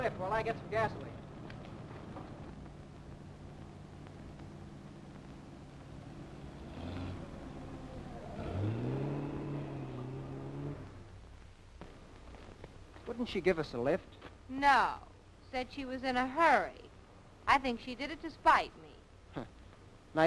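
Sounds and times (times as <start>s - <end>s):
speech: 0.0s - 1.2s, 13.2s - 16.8s, 17.5s - 18.8s
car driving past: 6.1s - 11.2s.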